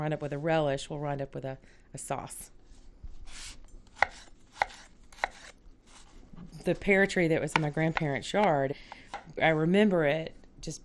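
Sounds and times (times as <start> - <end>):
speech: 0.0 - 2.6, 6.6 - 10.8
knife dicing food into half-inch pieces for relish: 3.3 - 6.1, 7.0 - 9.3.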